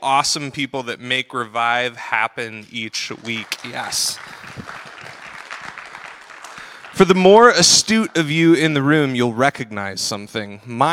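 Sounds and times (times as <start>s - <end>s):
speech: 0.0s - 4.4s, 7.0s - 10.9s
crowd applause: 3.0s - 8.8s.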